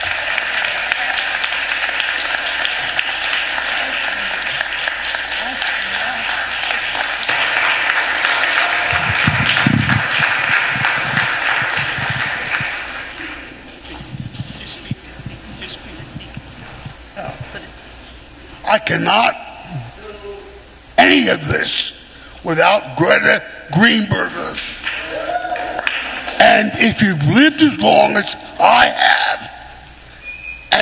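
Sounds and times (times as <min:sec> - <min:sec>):
round of applause: 0:00.0 - 0:14.7, 0:24.6 - 0:26.8
speech: 0:18.9 - 0:19.4, 0:21.2 - 0:24.6, 0:26.6 - 0:29.0.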